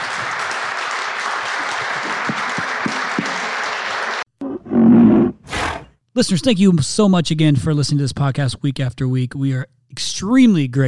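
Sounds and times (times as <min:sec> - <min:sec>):
crowd applause: 0:00.0 - 0:04.3
speech: 0:06.2 - 0:10.8.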